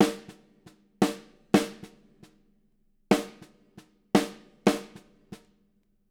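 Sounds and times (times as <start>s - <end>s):
live drums: 0.0s - 2.4s, 3.1s - 5.5s.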